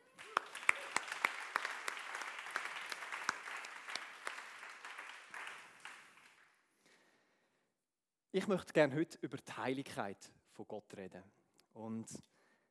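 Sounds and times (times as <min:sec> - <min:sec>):
audience applause: 0:00.0 - 0:06.6
speech: 0:08.4 - 0:12.3.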